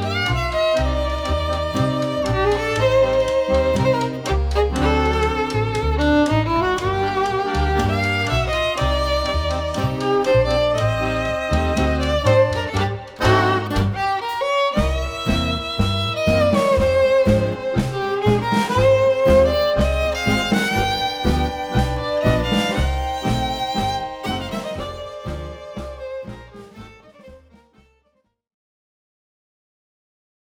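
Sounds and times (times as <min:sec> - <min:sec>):
contemporary nuevo tango violin music: 0:00.0 - 0:28.0.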